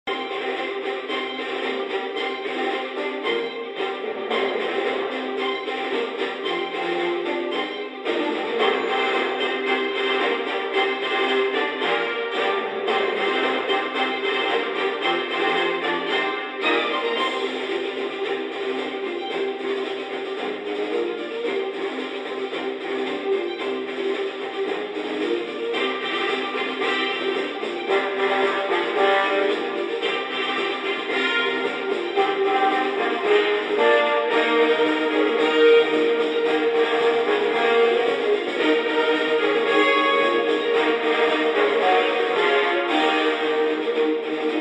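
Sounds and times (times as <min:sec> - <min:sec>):
gameplay music on radio: 0:00.1 - 0:44.5.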